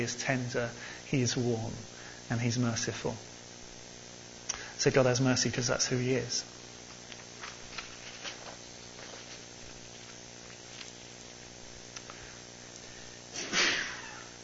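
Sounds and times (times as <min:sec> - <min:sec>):
speech: 0:00.0 - 0:03.3, 0:04.8 - 0:06.6
sneeze: 0:13.4 - 0:14.3.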